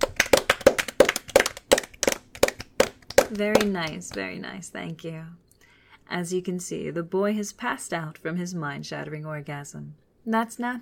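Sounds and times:
sharp handclaps: 0:00.0 - 0:04.2
speech: 0:03.3 - 0:05.4, 0:06.1 - 0:10.8.

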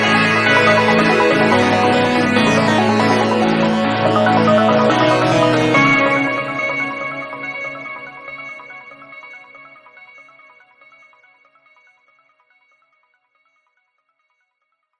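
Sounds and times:
instrumental music: 0:00.0 - 0:09.4.

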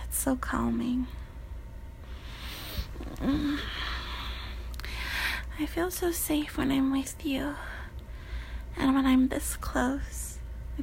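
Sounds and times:
speech: 0:00.2 - 0:01.2, 0:03.2 - 0:03.8, 0:05.6 - 0:07.7, 0:08.8 - 0:10.2
slow calm breathing: 0:02.0 - 0:05.6, 0:07.6 - 0:08.7.

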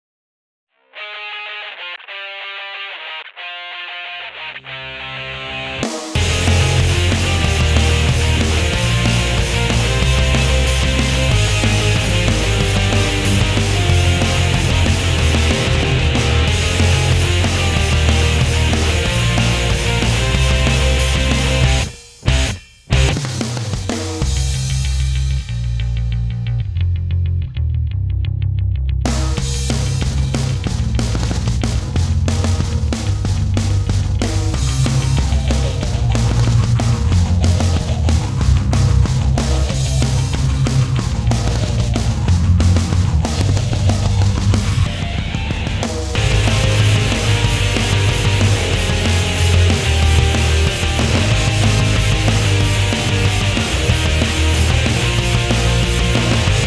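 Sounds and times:
thrash metal instrumental: 0:01.0 - 0:27.8, 0:29.1 - 0:56.6.

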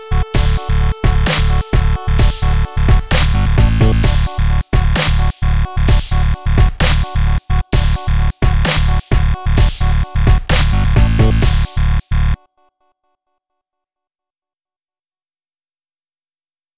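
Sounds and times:
chiptune music: 0:00.0 - 0:12.4.

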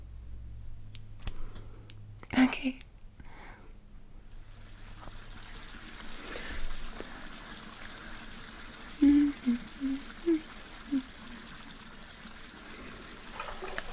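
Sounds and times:
speech: 0:02.4 - 0:02.9
bath being filled with tap water: 0:04.4 - 0:13.9.

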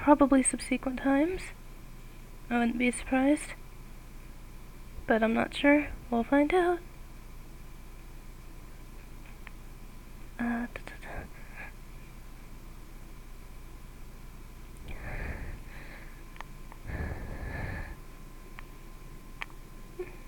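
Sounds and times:
speech: 0:00.0 - 0:01.6, 0:02.5 - 0:03.6, 0:05.1 - 0:06.9, 0:10.4 - 0:10.8
heavy breathing into a microphone: 0:14.9 - 0:18.0.

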